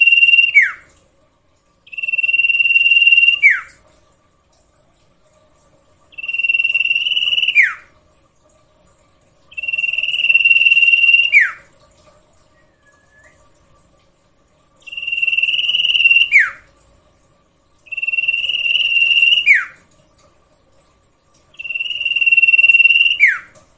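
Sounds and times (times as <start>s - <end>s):
sirtu cage bird song with buzzy rasping phrases and falling whistled slur: 0.0s - 0.9s, 1.9s - 3.8s, 6.1s - 7.9s, 9.5s - 11.7s, 12.5s - 13.6s, 14.8s - 16.7s, 17.9s - 19.8s, 21.5s - 23.6s.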